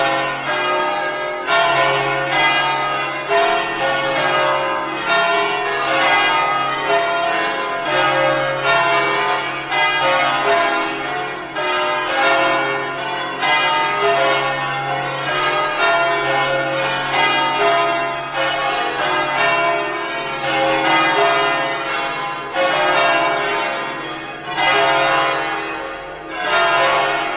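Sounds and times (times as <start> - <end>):
concert of bells ringing: 0.0 - 27.3.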